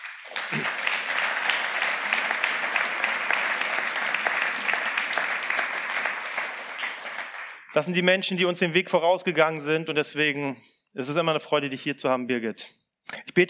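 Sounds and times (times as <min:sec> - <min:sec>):
audience applause: 0:00.0 - 0:08.0
speech: 0:07.8 - 0:12.8.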